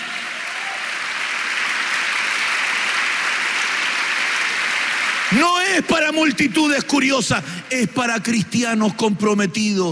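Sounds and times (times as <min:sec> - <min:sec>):
audience applause: 0:00.0 - 0:06.4
speech: 0:05.3 - 0:09.9.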